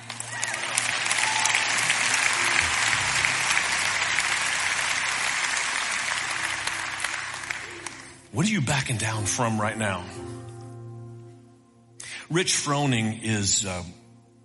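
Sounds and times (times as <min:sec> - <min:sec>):
audience applause: 0:00.0 - 0:08.3
speech: 0:08.4 - 0:10.5, 0:12.3 - 0:14.0.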